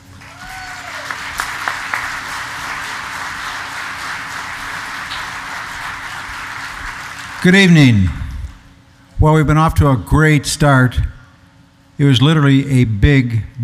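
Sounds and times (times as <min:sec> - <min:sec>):
audience applause at an EAA gathering: 0:00.0 - 0:07.8
speech: 0:07.4 - 0:08.2, 0:09.2 - 0:11.1, 0:12.0 - 0:13.6.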